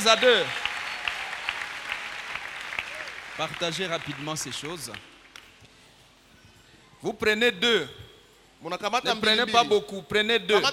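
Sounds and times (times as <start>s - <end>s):
speech: 0.0s - 0.6s, 3.4s - 5.1s, 7.0s - 8.0s, 8.6s - 10.7s
church congregation applauding in praise: 0.0s - 5.5s
sharp regular claps: 0.0s - 5.8s.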